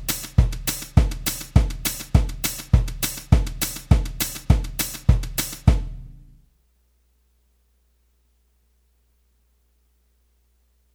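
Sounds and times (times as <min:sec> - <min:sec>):
fast country boom-chicka rhythm: 0:00.0 - 0:06.0.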